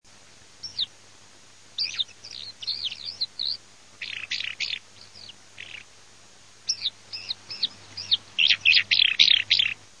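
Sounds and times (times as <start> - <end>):
faint low hum: 0.1 - 9.9
Eurasian skylark singing: 0.6 - 0.9, 1.8 - 5.9, 6.6 - 9.8.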